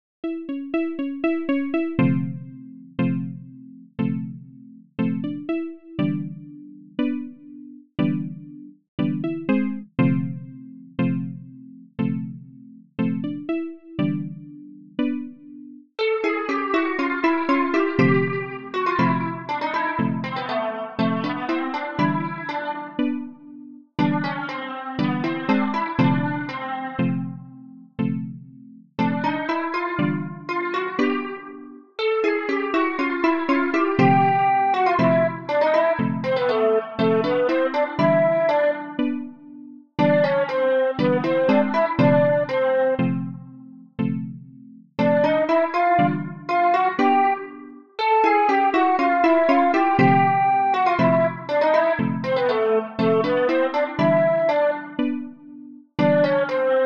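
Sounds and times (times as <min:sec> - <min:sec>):
RPG town music: 0:00.2 - 0:03.4, 0:05.0 - 0:11.4, 0:13.0 - 0:28.3, 0:29.0 - 0:44.3, 0:45.0 - 0:56.8.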